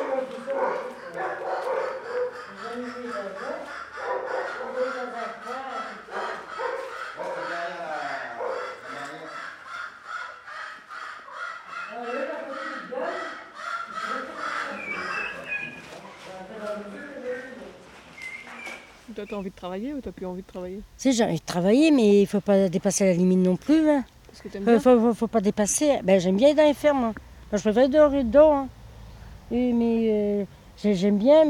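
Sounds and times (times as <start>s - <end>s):
turkeys gobbling: 0.0s - 16.1s
speech: 19.2s - 28.8s, 29.5s - 31.4s.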